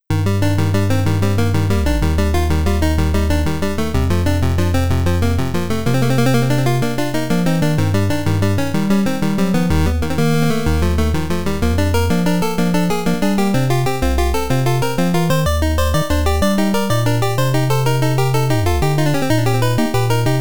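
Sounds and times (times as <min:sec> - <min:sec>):
chiptune music: 0:00.1 - 0:20.3.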